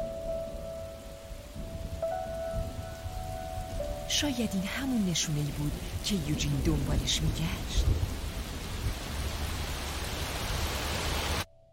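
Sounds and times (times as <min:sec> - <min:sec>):
rain falling on first rainy day after a year: 0:00.0 - 0:11.5
speech: 0:04.1 - 0:08.1.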